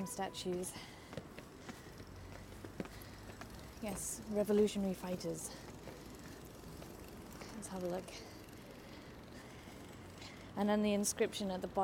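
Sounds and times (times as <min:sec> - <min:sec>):
speech: 0:00.0 - 0:01.0, 0:03.8 - 0:05.7, 0:07.7 - 0:08.3, 0:10.6 - 0:11.8
footsteps on bridge stairs: 0:00.5 - 0:05.0.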